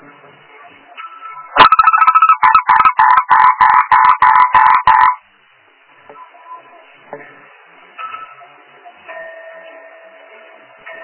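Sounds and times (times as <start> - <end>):
frog raspy croaks: 1.6 - 5.2.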